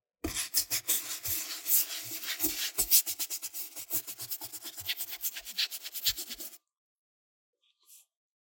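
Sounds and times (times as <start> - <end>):
brush cleaning a cutting board: 0.3 - 6.6.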